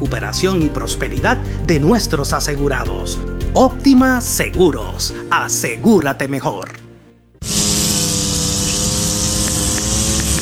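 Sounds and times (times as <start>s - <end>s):
speech: 0.0s - 6.8s
lawn mower engine running: 7.4s - 10.4s.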